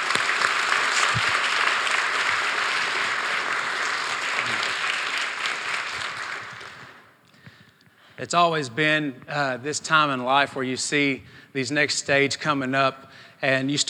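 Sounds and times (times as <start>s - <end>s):
large audience applause: 0.0s - 7.1s
speech: 8.2s - 13.8s.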